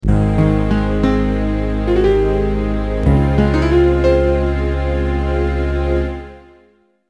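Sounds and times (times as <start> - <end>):
fanfare: 0.0 - 6.7.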